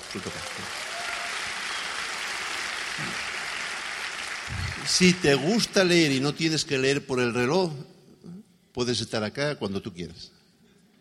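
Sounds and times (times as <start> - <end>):
audience applause: 0.0 - 6.2
speech: 0.1 - 0.9, 4.8 - 10.4.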